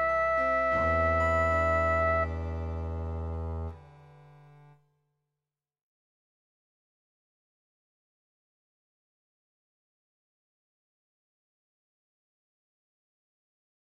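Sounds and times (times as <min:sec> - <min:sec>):
early Baroque music: 0:00.0 - 0:04.8.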